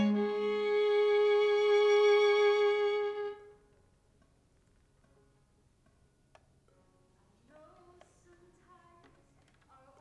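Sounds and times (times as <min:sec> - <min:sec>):
violin: 0:00.0 - 0:03.6.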